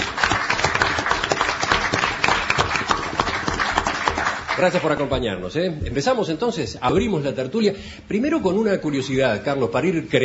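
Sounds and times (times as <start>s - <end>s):
audience applause: 0.0s - 5.2s
speech: 4.6s - 10.2s.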